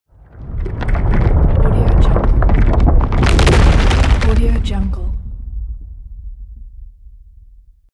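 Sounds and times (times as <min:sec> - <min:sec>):
large rock falling: 0:00.1 - 0:05.8.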